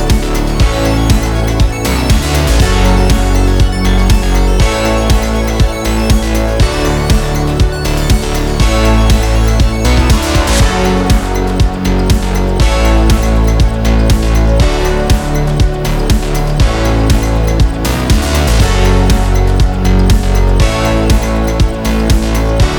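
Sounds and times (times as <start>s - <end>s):
indie electro sport commercial music: 0.0s - 22.7s.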